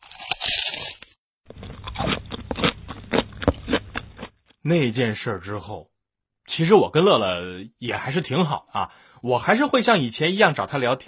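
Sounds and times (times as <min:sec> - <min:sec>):
crunchy rice crackers being chewed: 0:00.0 - 0:04.6
speech: 0:04.7 - 0:05.9, 0:06.6 - 0:11.0.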